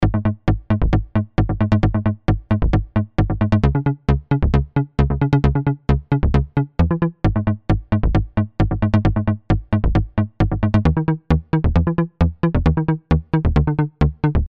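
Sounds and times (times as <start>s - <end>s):
Kontakt7 synthesizer: 0.0s - 14.4s.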